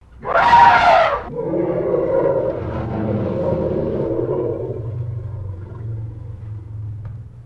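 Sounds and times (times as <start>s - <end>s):
African elephant trumpeting and roaring: 0.1s - 7.4s.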